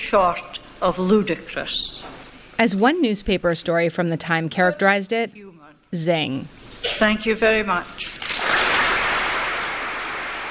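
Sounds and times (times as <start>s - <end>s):
speech: 0.1s - 8.2s
crowd applauding: 8.2s - 10.4s.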